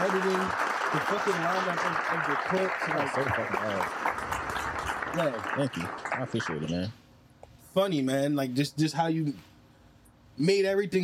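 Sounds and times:
applause: 0.0s - 6.9s
speech: 1.0s - 4.1s, 5.2s - 7.0s, 7.7s - 9.5s, 10.4s - 11.0s.

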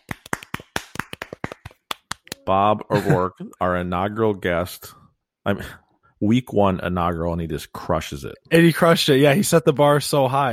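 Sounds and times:
golf clap, soft polite clapping: 0.0s - 2.6s
speech: 2.4s - 10.5s.

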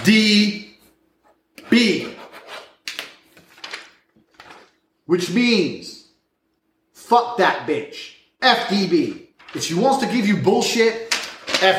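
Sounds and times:
speech: 0.0s - 0.6s, 1.7s - 2.2s, 5.1s - 5.9s, 7.1s - 11.0s, 11.6s - 11.7s
scratchy strokes of writing on a piece of paper: 2.0s - 2.8s.

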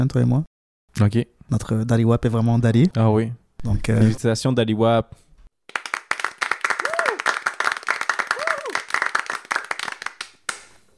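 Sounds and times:
speech: 0.0s - 5.8s
applause: 5.7s - 10.8s.

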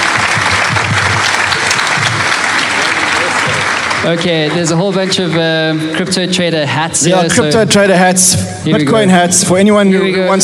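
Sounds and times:
audience applause: 0.0s - 6.2s
speech: 4.0s - 10.4s.

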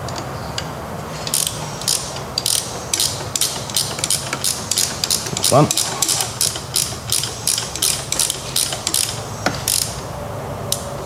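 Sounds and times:
low mechanical hum: 0.0s - 11.0s
ratchet wrench turning a motorcycle suspension adjuster: 1.2s - 10.0s
speech: 5.5s - 6.0s.

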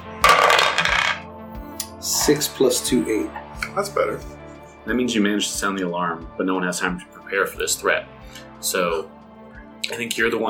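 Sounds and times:
die clattering on a hard surface: 0.2s - 1.2s
speech: 2.0s - 9.2s, 9.9s - 10.4s.

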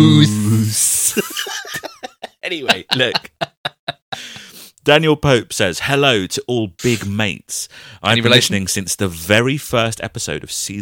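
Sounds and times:
person humming a low note: 0.0s - 1.1s
person imitating a pantomime hiss: 0.0s - 1.2s, 6.8s - 7.1s
laughter: 1.0s - 4.4s
speech: 2.5s - 3.8s, 4.8s - 10.8s.

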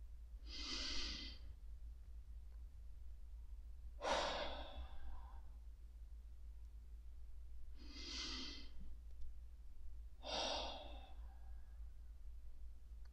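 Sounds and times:
faint steady low hum: 0.0s - 13.1s
deep breaths in through the nose and out through the mouth: 0.4s - 1.6s, 4.0s - 5.7s, 7.6s - 9.2s, 10.1s - 12.2s.

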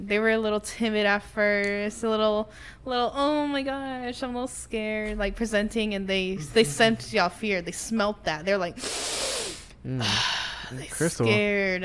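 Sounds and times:
speech: 0.1s - 11.8s
sharp inhale: 8.8s - 10.7s.

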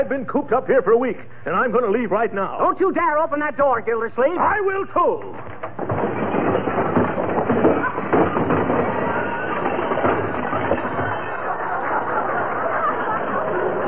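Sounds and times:
speech: 0.0s - 6.0s
overstuffed closet contents crashing out: 5.4s - 11.4s
laughter: 7.7s - 13.8s.

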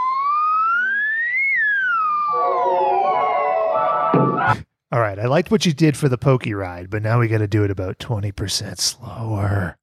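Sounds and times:
slide whistle: 0.2s - 4.5s
speech: 4.3s - 9.8s.

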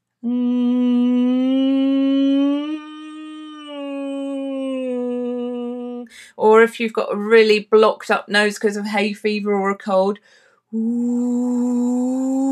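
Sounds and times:
speech: 0.2s - 0.5s, 6.4s - 12.5s
voice humming a nasal ng warm-up tone: 0.2s - 6.1s, 10.7s - 12.5s.

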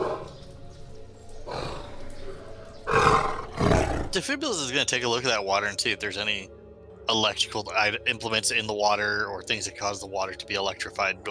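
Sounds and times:
low rough animal growl: 0.0s - 0.4s, 1.4s - 4.2s
speech: 4.1s - 11.2s.

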